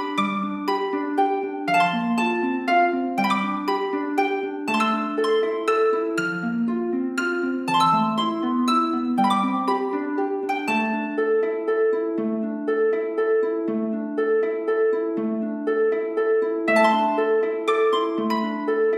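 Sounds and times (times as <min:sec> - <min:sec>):
travel harp: 0:00.0 - 0:18.9.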